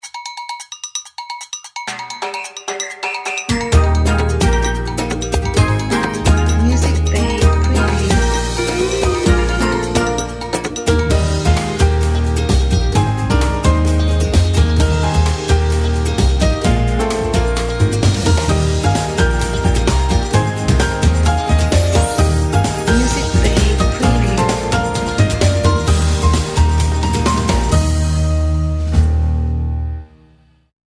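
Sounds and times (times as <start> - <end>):
Rio Carnival: 0.1 - 29.4.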